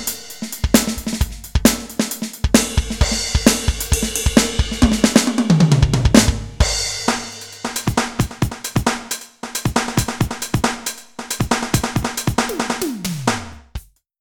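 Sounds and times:
electronic drum kit sounds: 0.0s - 14.0s.

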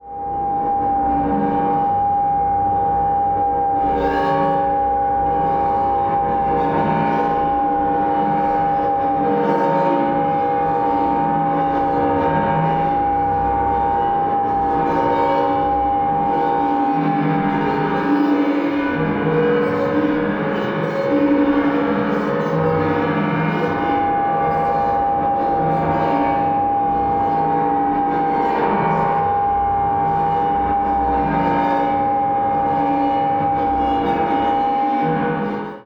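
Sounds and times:
Korg volca modular synthesizer space sound: 0.0s - 35.8s.

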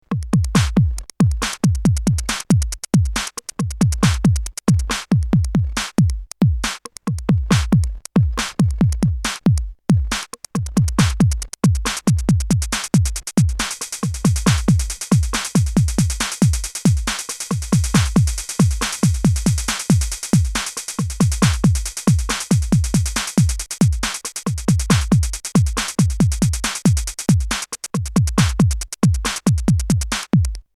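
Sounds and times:
AKAI MPC60 sampler beat: 0.0s - 30.7s.

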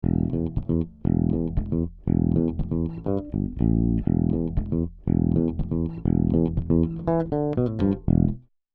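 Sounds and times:
bass: 0.0s - 8.5s.

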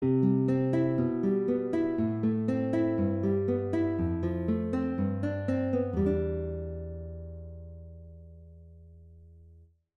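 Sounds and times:
concert guitar: 0.0s - 9.4s.

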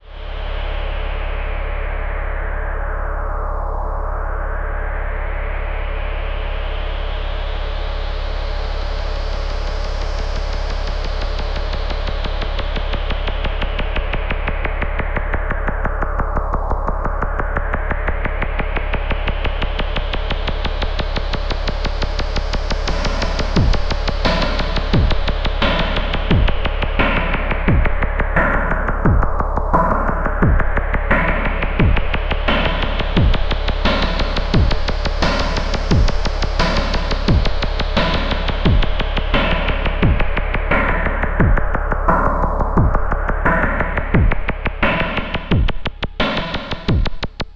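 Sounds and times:
drone: 0.0s - 47.5s
music loops: 19.7s - 47.5s.

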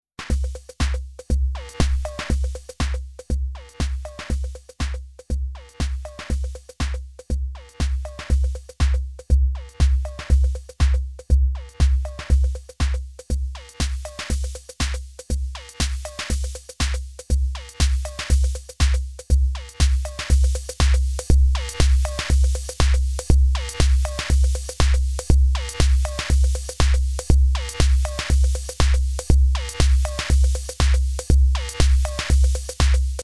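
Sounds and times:
drums processed with dbx: 0.2s - 33.2s.

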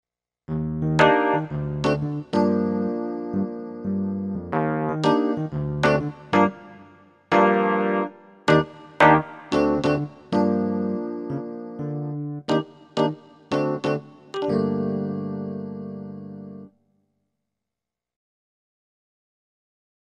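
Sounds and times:
Korg EK50 stage electric piano: 0.5s - 16.8s.

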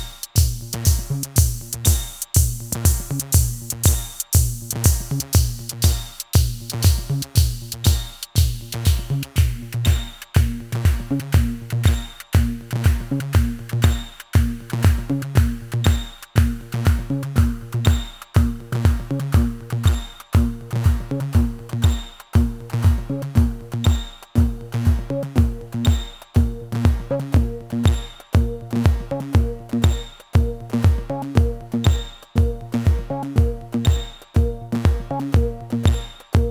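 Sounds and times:
synth through twin VC filters against each other: 0.4s - 36.4s.

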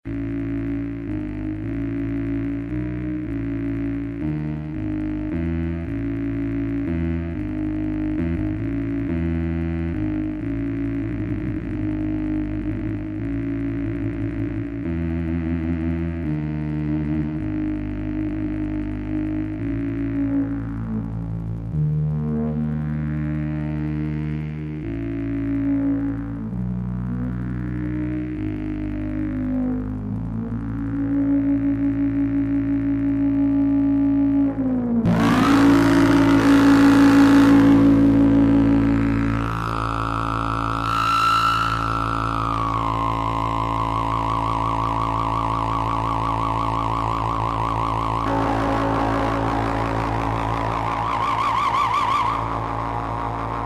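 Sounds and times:
MIDI melody: 0.0s - 53.6s.

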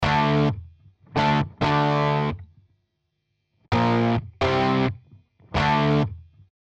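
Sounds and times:
electric guitar with tube distortion: 0.0s - 0.6s, 1.2s - 2.4s, 3.7s - 6.2s.

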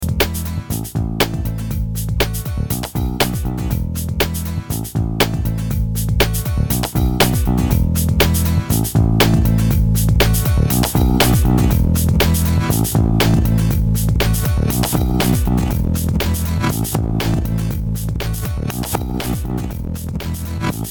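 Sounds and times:
old tape recording: 0.0s - 20.8s.

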